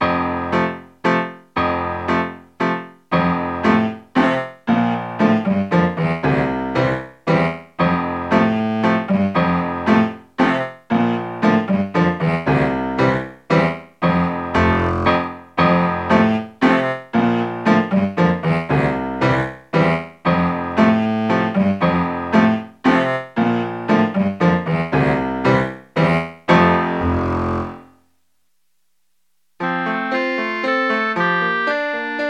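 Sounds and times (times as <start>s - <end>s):
waltz music: 0.1s - 27.9s, 29.6s - 32.2s.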